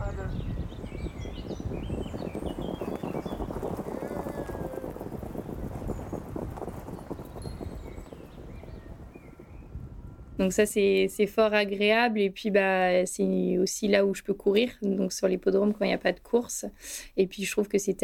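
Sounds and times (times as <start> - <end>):
birds chirping: 0.0 - 10.8
racehorses galloping at racing speed: 1.2 - 9.7
speech: 10.4 - 18.0.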